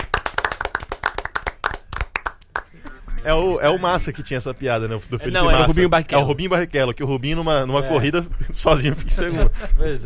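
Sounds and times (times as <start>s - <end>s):
clapping: 0.0s - 2.8s
speech: 3.2s - 10.0s.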